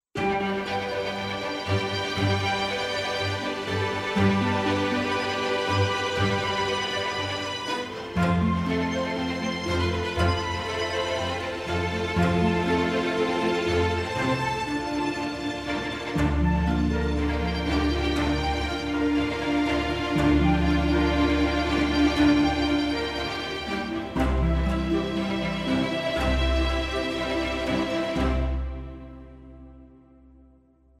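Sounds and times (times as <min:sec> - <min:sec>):
epic winter orchestral music: 0:00.2 - 0:30.5.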